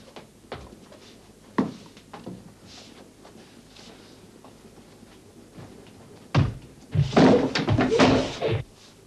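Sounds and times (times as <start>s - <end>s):
heavy stomping footsteps on a roof: 6.3s - 8.3s.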